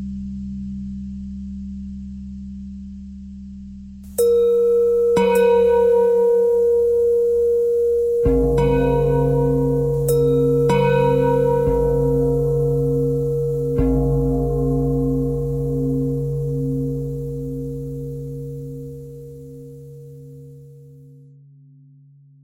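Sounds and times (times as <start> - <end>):
pentatonic bell melody: 4.2 - 20.8.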